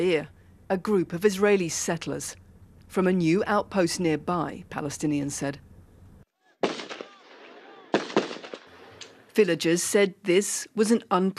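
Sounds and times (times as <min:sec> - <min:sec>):
speech: 0:00.0 - 0:05.7, 0:09.4 - 0:11.3
gunfire from a settlement security guard on a road outside Sa'ir: 0:06.6 - 0:09.2.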